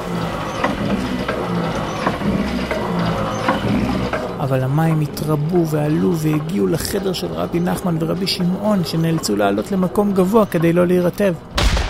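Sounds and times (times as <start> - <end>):
water pump mechanism working: 0.0 - 11.4
speech: 4.5 - 11.5.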